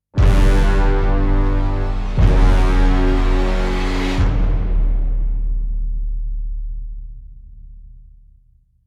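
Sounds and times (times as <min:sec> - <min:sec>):
epic orchestral stinger: 0:00.2 - 0:05.6.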